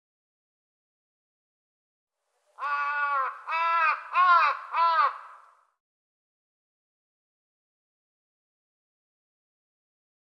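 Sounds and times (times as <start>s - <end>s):
bird cawing: 2.6s - 5.8s.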